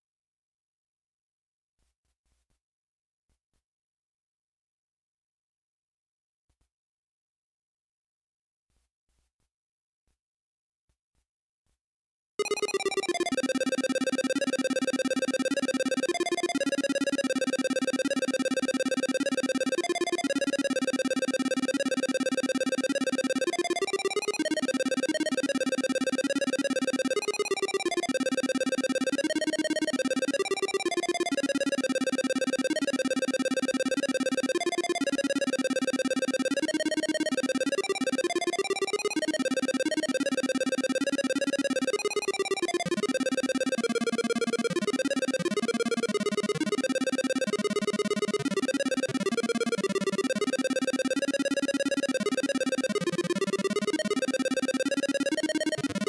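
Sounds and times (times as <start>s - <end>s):
melody: 12.4s - 56.0s.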